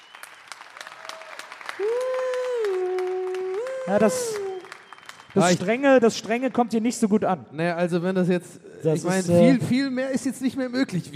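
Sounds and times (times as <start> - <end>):
audience applause: 0.0 - 6.0
speech: 3.9 - 4.4, 5.3 - 11.1.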